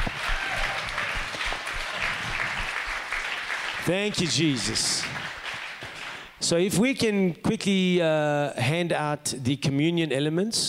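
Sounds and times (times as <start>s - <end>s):
audience applause: 0.0s - 6.3s
speech: 3.9s - 5.2s, 6.5s - 10.6s.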